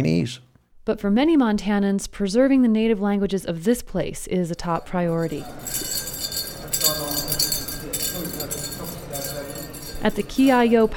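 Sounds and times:
speech: 0:00.0 - 0:05.9, 0:10.0 - 0:10.9
jingle dresses jingling in Adams Center Auditorium corridors: 0:04.6 - 0:10.9.

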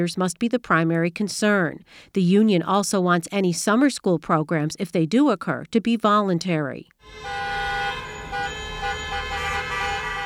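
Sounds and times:
speech: 0:00.0 - 0:07.6
car horns honking: 0:07.0 - 0:10.2
low traffic rumble: 0:07.0 - 0:10.2.

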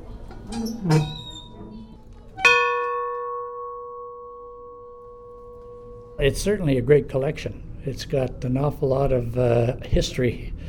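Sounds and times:
speech: 0:00.5 - 0:01.2, 0:06.2 - 0:10.6
large locomotive bell struck: 0:02.4 - 0:06.2.

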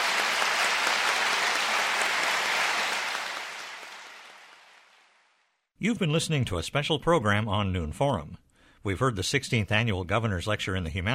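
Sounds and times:
audience applause: 0:00.0 - 0:05.4
speech: 0:05.8 - 0:11.1.

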